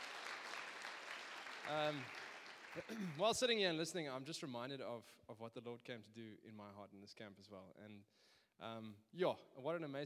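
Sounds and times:
round of applause: 0.0 - 3.5
speech: 1.6 - 2.2, 2.8 - 10.0.

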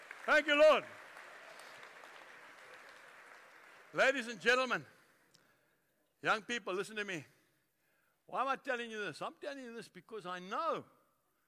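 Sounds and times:
crowd applause: 0.0 - 4.4
speech: 0.2 - 1.0, 3.9 - 4.9, 6.2 - 7.3, 8.3 - 11.0.

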